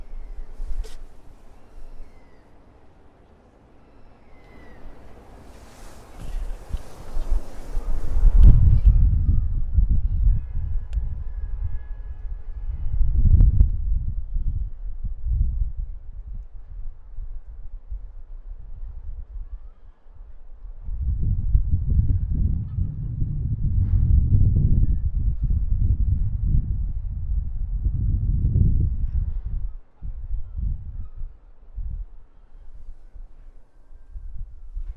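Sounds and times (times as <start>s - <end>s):
brief hiss: 0.0s - 2.3s, 4.3s - 8.9s
rumbling gusts in Prague: 0.0s - 3.1s, 3.8s - 19.5s, 20.6s - 33.4s.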